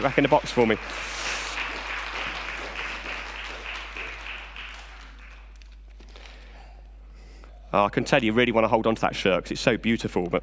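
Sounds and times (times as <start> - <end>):
speech: 0.0 - 1.2, 7.7 - 10.4
audience clapping: 0.0 - 6.5.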